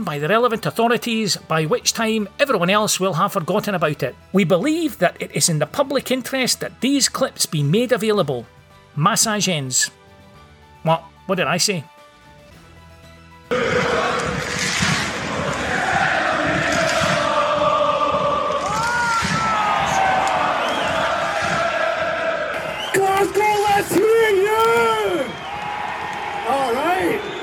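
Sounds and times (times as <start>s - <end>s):
speech: 0.0s - 10.1s, 10.8s - 12.0s, 13.5s - 13.8s
crowd cheering and whooping: 13.5s - 27.4s.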